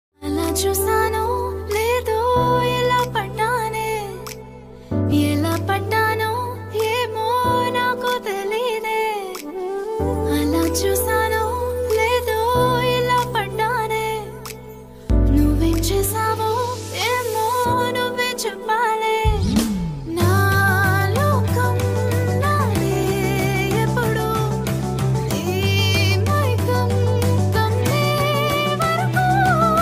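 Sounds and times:
woman singing a song: 0:00.2 - 0:29.7.

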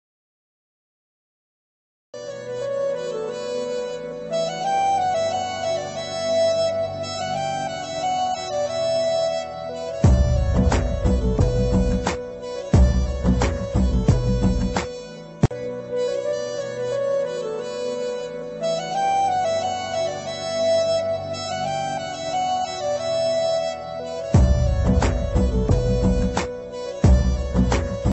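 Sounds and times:
South Indian instrumental ringtone: 0:02.2 - 0:28.1.

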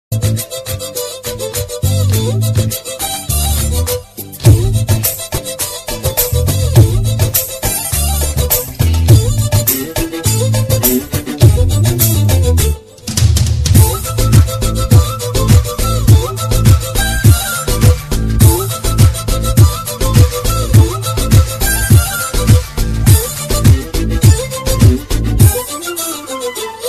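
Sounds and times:
background music ringtone song: 0:00.2 - 0:13.2, 0:13.8 - 0:26.8.

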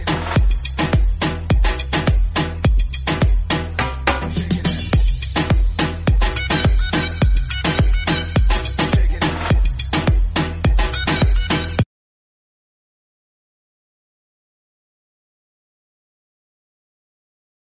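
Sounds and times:
instrumental ringtone background music: 0:00.0 - 0:11.8.

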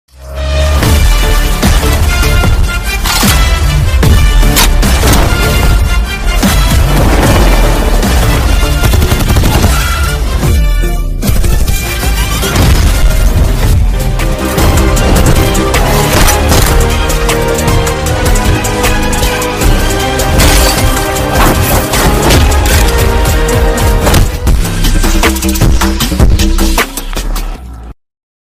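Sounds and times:
trailer background music: 0:00.1 - 0:28.0.

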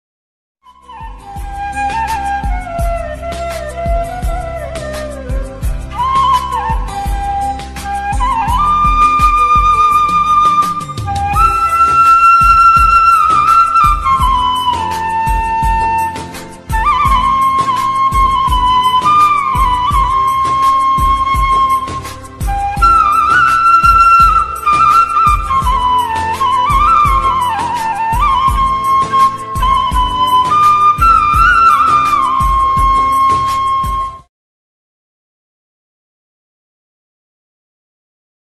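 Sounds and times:
flute instrumental ringtone: 0:00.7 - 0:34.3.

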